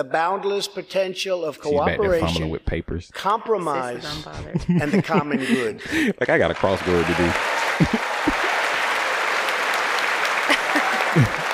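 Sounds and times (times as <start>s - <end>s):
speech: 0.0s - 8.1s
laughter: 1.6s - 2.6s, 3.9s - 9.0s, 10.3s - 11.5s
person clapping: 6.6s - 11.5s.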